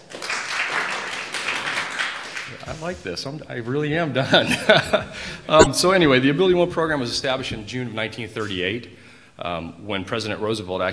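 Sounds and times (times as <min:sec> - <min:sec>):
audience clapping: 0:00.0 - 0:02.8
speech: 0:02.7 - 0:10.9
laughter: 0:04.2 - 0:05.8.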